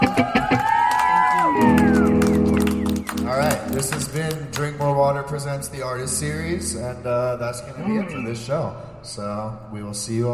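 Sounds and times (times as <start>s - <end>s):
crowd cheering with whoops and whistling cries: 0.0s - 3.5s
hands clapping: 0.0s - 5.0s
speech: 5.1s - 10.3s.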